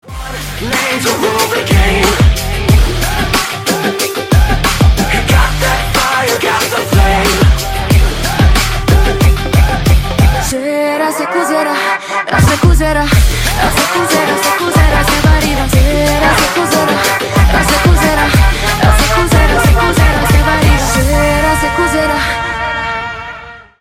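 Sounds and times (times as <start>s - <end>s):
trailer background music: 0.0s - 23.7s.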